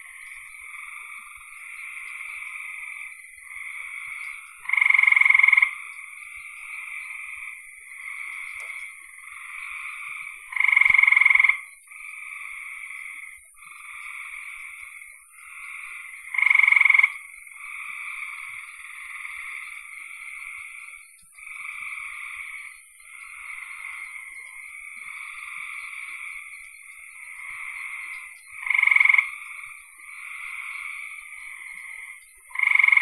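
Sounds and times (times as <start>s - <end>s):
frog chorus: 0.0s - 33.0s
faint scattered clicks: 8.4s - 9.0s.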